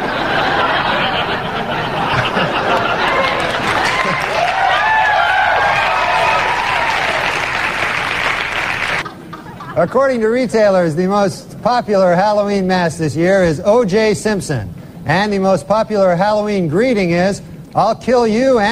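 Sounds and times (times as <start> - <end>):
scattered laughter: 0.0 - 4.4
crowd applause: 0.0 - 9.7
speech: 9.8 - 18.7.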